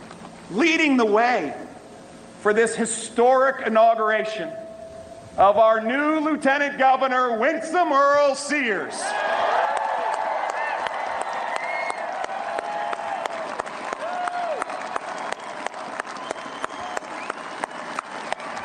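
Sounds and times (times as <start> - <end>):
speech: 0.5 - 1.6, 2.4 - 4.6, 5.4 - 9.4
large crowd applause, standing ovation: 9.1 - 18.6.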